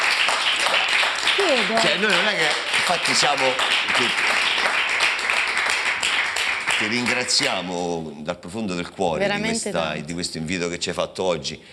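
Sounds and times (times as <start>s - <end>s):
audience applause: 0.0s - 7.9s
speech: 1.4s - 4.5s, 6.8s - 11.7s.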